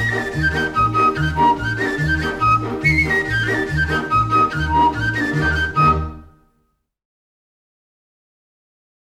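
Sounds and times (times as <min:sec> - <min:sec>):
folk orchestra playing: 0:00.0 - 0:06.5
nai pan flute: 0:00.0 - 0:06.5.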